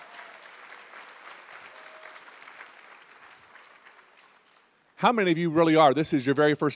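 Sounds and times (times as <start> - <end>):
faint whistles and cheers: 0.0 - 4.0
crowd clapping: 0.0 - 5.1
speech: 5.0 - 6.7.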